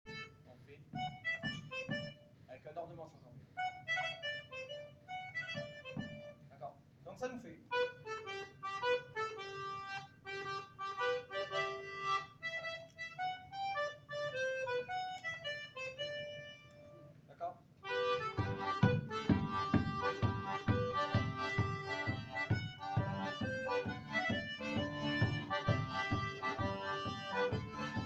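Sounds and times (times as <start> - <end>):
ornamented mazurka variation: 1.0 - 2.4, 3.6 - 6.4, 7.7 - 17.2, 17.8 - 28.0.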